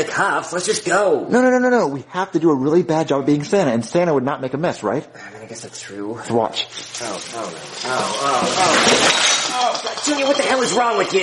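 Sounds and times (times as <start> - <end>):
speech: 0.0 - 11.2
Christmas tree toppling and its glass ornaments breaking: 6.6 - 11.2.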